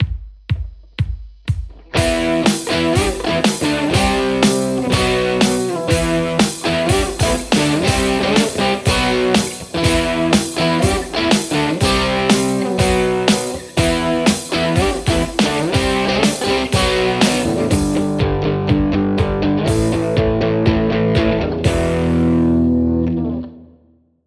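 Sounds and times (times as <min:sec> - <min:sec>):
Les Paul electric guitar: 0:01.7 - 0:23.8.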